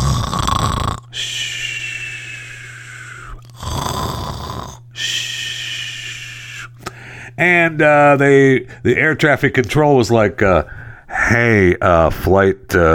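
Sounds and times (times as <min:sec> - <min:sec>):
sleeping pilots snoring: 0:00.0 - 0:07.0
speech: 0:07.4 - 0:12.9.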